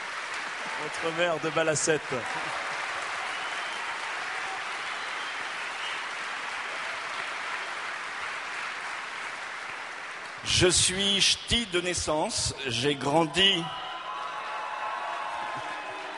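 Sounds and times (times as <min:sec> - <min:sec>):
audience applause and cheering: 0:00.0 - 0:16.1
speech: 0:00.8 - 0:02.7, 0:10.4 - 0:13.9.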